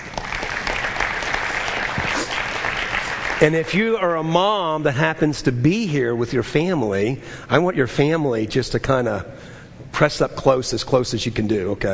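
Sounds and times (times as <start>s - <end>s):
audience hand clapping: 0.0s - 3.8s
speech: 3.4s - 11.9s.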